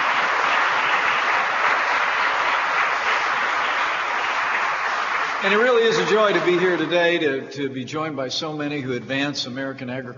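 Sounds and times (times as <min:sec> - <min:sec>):
audience applause: 0:00.0 - 0:07.3
speech: 0:05.4 - 0:10.1.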